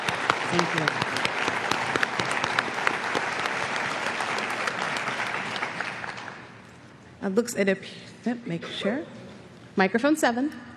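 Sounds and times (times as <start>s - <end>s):
audience applause: 0.0s - 6.6s
speech: 0.5s - 1.3s, 7.2s - 9.2s, 9.8s - 10.7s.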